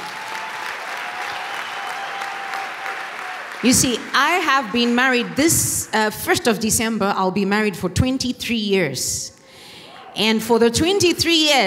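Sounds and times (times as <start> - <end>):
people clapping hands: 0.0 - 6.8
speech: 3.6 - 9.4, 10.2 - 11.6.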